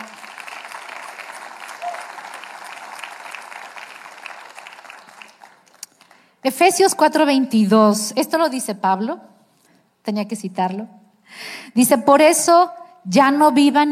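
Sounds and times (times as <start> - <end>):
audience applause: 0.0 - 6.2
speech: 6.4 - 9.3, 10.1 - 13.9.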